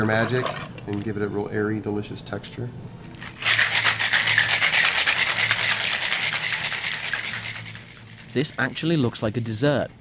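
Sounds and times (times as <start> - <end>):
speech: 0.0 - 3.4, 8.4 - 10.0
cocktail shaker shaken hard with ice: 3.3 - 10.0.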